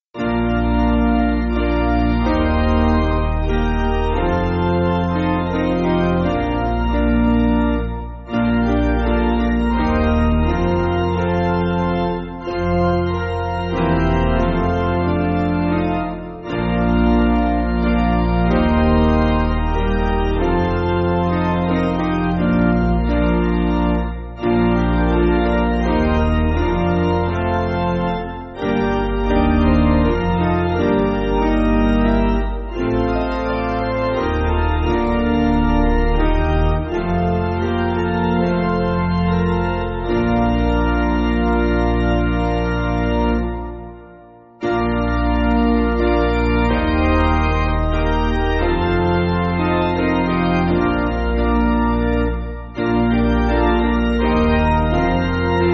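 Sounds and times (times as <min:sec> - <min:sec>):
piano backing music for churches: 0:00.2 - 0:55.7.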